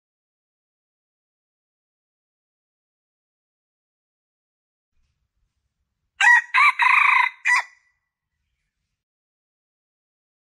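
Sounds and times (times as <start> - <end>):
Red junglefowl male crowing: 6.2 - 7.8.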